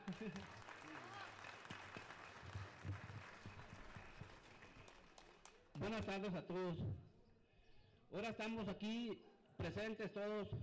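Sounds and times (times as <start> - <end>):
audience applause: 0.0 - 5.4
speech: 0.1 - 0.7, 5.8 - 7.1, 8.1 - 10.6.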